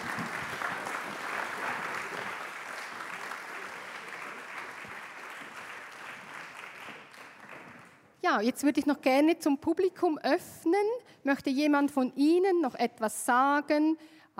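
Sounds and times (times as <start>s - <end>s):
audience applause: 0.0s - 8.0s
speech: 8.3s - 14.3s.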